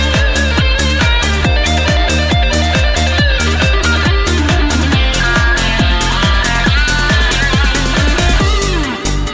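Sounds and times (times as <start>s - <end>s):
electric guitar: 0.0s - 9.3s.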